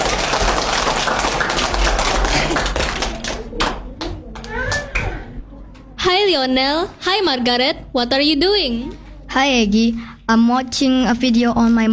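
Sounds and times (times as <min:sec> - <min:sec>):
group clapping: 0:00.0 - 0:05.4
children's voices chattering: 0:01.7 - 0:11.9
speech: 0:06.3 - 0:11.9.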